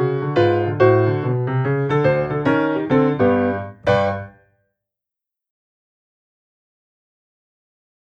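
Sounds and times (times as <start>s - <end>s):
piano rag exercise: 0.0s - 4.4s.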